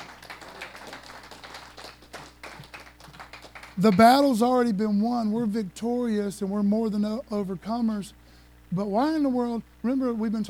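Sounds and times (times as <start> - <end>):
audience clapping: 0.0 - 4.2
speech: 3.8 - 10.4.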